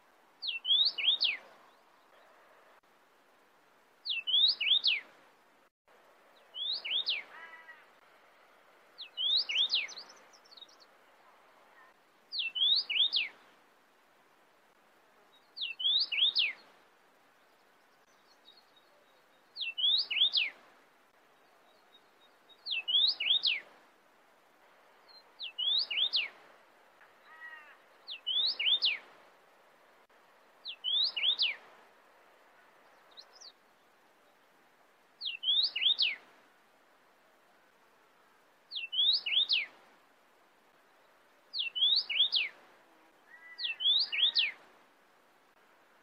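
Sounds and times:
cardinal singing sweeping whistled phrases: 0:00.4 - 0:01.4, 0:04.1 - 0:05.0, 0:09.1 - 0:10.1, 0:12.4 - 0:13.3, 0:15.6 - 0:16.6, 0:19.6 - 0:20.5, 0:22.7 - 0:23.6, 0:25.4 - 0:26.3, 0:28.1 - 0:29.0, 0:30.7 - 0:31.6, 0:35.2 - 0:36.2, 0:38.7 - 0:39.7, 0:41.6 - 0:42.5, 0:43.3 - 0:44.6.

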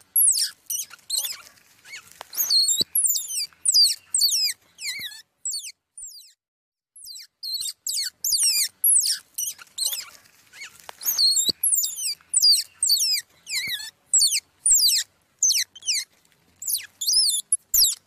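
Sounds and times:
squirrel pup giving high wavering squeaks: 0:00.0 - 0:06.4, 0:07.0 - 0:18.0.

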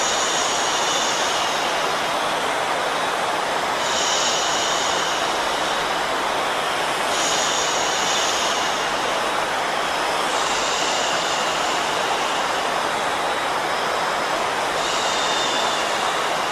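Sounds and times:
white noise: 0:00.0 - 0:16.4.

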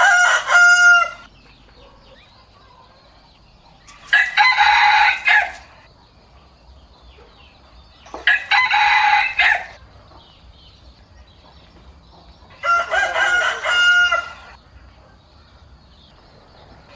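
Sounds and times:
rooster crowing: 0:00.0 - 0:01.3, 0:04.0 - 0:05.8, 0:08.2 - 0:09.8, 0:12.5 - 0:14.6.

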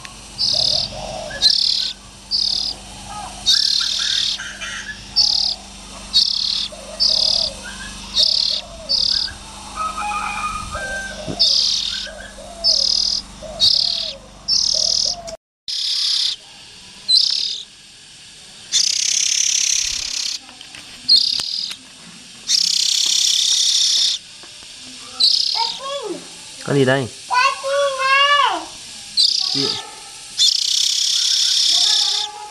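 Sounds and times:
low humming background: 0:00.0 - 0:32.5
Oriental magpie-robin hissing rasps: 0:00.3 - 0:20.4, 0:21.1 - 0:21.8, 0:22.5 - 0:24.3, 0:24.9 - 0:26.6, 0:27.2 - 0:32.5
speech: 0:26.7 - 0:27.2, 0:29.5 - 0:29.8.

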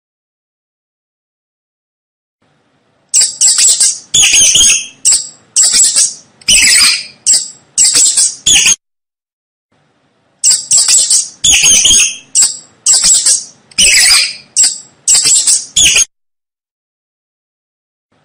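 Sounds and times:
mouse squeaking: 0:03.1 - 0:08.8, 0:10.4 - 0:16.1.

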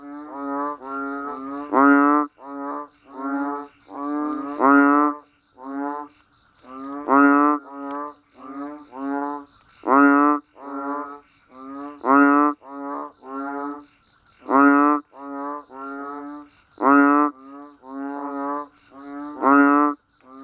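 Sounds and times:
banded bullfrogs croaking nasal honks: 0:00.0 - 0:20.4.

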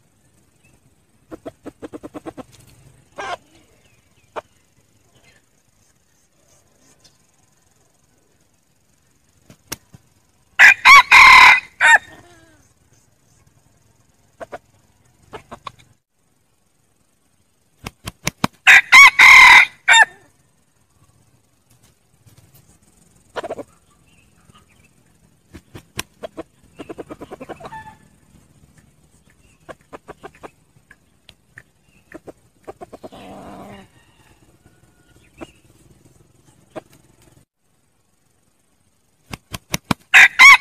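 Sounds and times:
red junglefowl clucking: 0:01.3 - 0:03.6, 0:15.3 - 0:15.9, 0:23.3 - 0:24.7, 0:26.0 - 0:28.2, 0:29.5 - 0:31.0, 0:31.6 - 0:34.3
red junglefowl crowing: 0:10.6 - 0:12.5, 0:18.6 - 0:20.3, 0:33.1 - 0:35.6, 0:40.1 - 0:40.5.

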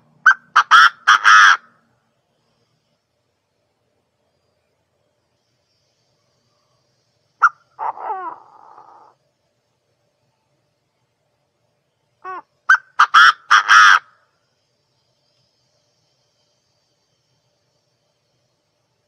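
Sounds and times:
partridge calling: 0:00.2 - 0:01.8, 0:07.4 - 0:09.2, 0:12.2 - 0:14.2.

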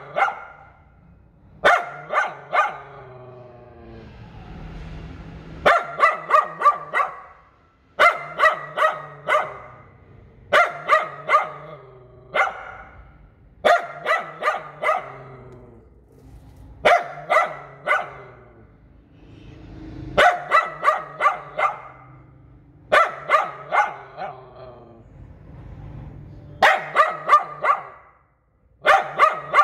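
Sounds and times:
poodle yapping: 0:00.0 - 0:00.7, 0:01.6 - 0:03.2, 0:05.7 - 0:07.4, 0:08.0 - 0:09.9, 0:10.5 - 0:13.0, 0:13.6 - 0:15.6, 0:16.8 - 0:18.5, 0:20.2 - 0:22.1, 0:22.9 - 0:24.8, 0:26.6 - 0:28.1, 0:28.8 - 0:29.6.

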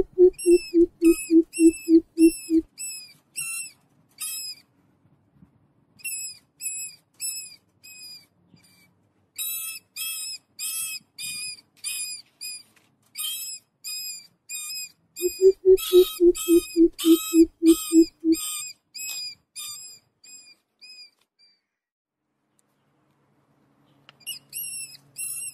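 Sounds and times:
Greater coucal squeaky notes: 0:00.0 - 0:02.6, 0:15.2 - 0:18.4.

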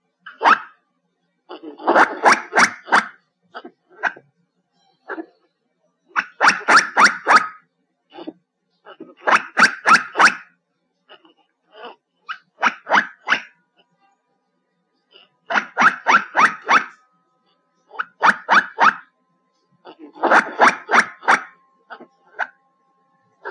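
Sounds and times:
black giant squirrel calls: 0:00.3 - 0:00.8, 0:01.6 - 0:04.2, 0:06.1 - 0:10.5, 0:11.2 - 0:13.6, 0:15.1 - 0:17.0, 0:17.9 - 0:19.1, 0:19.8 - 0:22.6.

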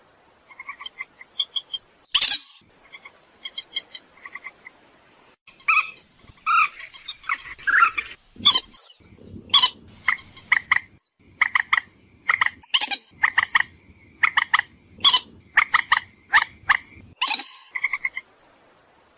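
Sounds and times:
purple swamphen screeching and clucking: 0:05.5 - 0:18.2.

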